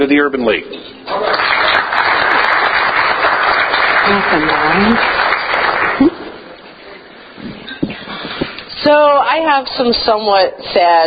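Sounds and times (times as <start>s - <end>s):
speech: 0.0s - 1.4s, 4.1s - 5.2s, 8.8s - 11.0s
club meeting audience applauding to welcome a guest speaker: 1.1s - 6.6s.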